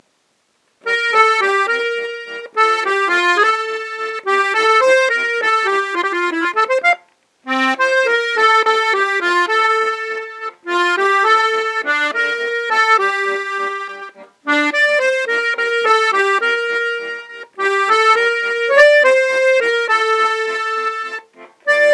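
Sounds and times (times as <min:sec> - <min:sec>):
waltz music: 0:00.9 - 0:21.9.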